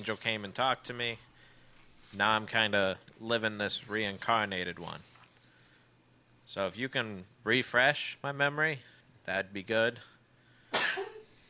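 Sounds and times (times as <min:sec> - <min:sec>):
speech: 0:00.0 - 0:01.3, 0:02.1 - 0:05.1, 0:06.5 - 0:10.1
sneeze: 0:10.7 - 0:11.4.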